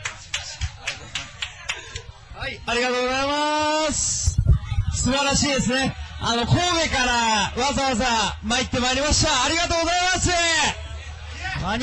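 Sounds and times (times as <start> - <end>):
audience clapping for a performer: 0.0 - 2.0
speech: 2.4 - 4.1, 5.0 - 10.8.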